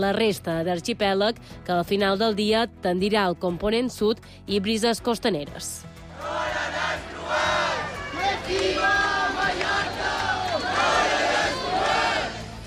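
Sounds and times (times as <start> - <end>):
speech: 0.0 - 7.7
crowd shouting and chanting at a demonstration against mass tourism in central Palma: 6.1 - 12.6.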